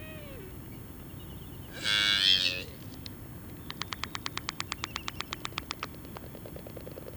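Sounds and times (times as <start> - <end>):
black-footed albatross rasping call: 1.7 - 2.8
black-footed albatross dry clacks: 3.6 - 7.1.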